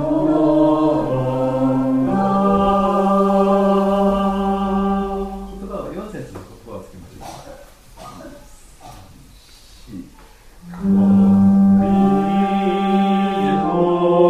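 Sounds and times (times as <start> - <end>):
choir practice bass voices singing: 0.0 - 6.0, 10.6 - 14.2.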